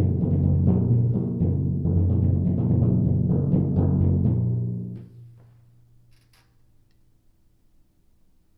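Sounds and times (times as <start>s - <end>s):
timpani etude: 0.0s - 5.0s.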